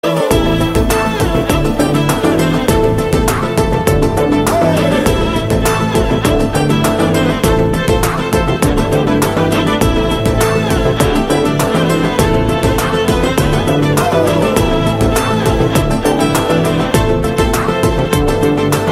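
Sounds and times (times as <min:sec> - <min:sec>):
background theme music: 0:00.0 - 0:18.9.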